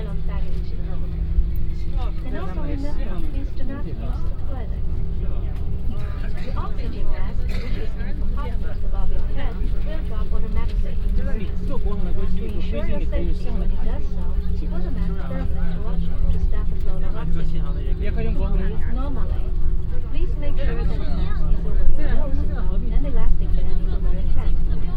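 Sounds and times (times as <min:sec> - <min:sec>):
airplane taking off from Chengdu to Beijing: 0:00.0 - 0:24.9.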